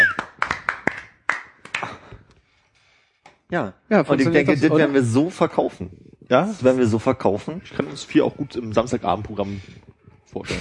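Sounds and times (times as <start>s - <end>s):
applause: 0.0s - 2.2s
speech: 3.5s - 10.5s.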